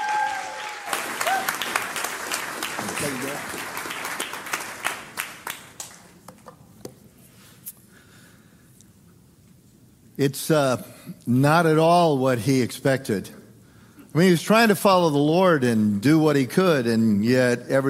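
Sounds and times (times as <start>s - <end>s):
audience applauding to welcome guest speaker Pastor Larry Osborne: 0.0s - 6.1s
speech: 2.8s - 3.8s, 10.2s - 13.4s, 14.1s - 17.8s.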